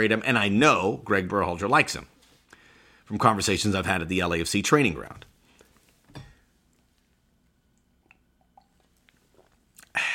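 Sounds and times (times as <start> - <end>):
speech: 0.0 - 2.2, 3.1 - 5.4
drinking a sip of water: 7.8 - 10.1
swallow: 8.0 - 10.1.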